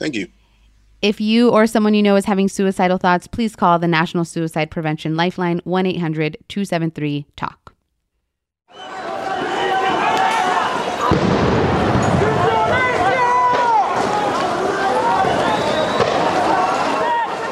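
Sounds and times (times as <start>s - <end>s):
speech: 0.0s - 0.4s, 1.0s - 7.6s
protesters in Colombia shouting and crying during anti-government demonstrations: 8.7s - 17.5s.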